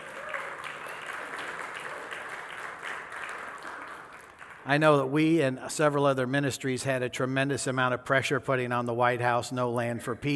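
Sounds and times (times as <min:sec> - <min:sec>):
audience hand clapping: 0:00.0 - 0:05.1
speech: 0:04.7 - 0:10.3.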